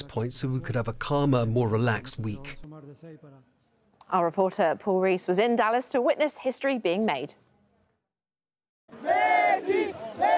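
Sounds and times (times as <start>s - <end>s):
speech: 0.2s - 7.5s
large stadium crowd of football fans roaring and chanting: 8.9s - 10.3s.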